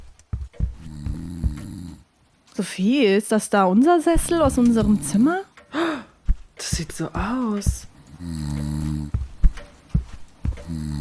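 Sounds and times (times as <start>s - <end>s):
snoring: 0.7s - 2.0s, 8.1s - 9.2s, 10.5s - 10.9s
speech: 2.6s - 5.8s, 6.8s - 9.2s.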